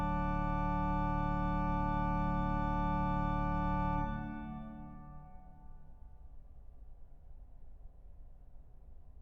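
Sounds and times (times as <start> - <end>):
organ music: 0.0 - 5.6.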